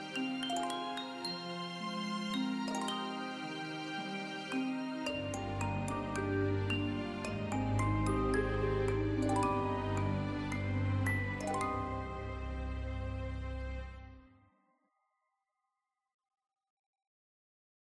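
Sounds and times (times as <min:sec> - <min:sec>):
lullaby music: 0:00.0 - 0:14.2.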